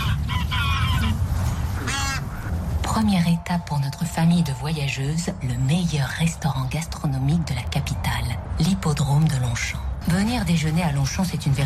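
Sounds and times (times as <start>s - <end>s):
migrating geese honking at Longchamp racecourse in Paris: 0.0s - 2.6s
speech: 3.0s - 11.6s.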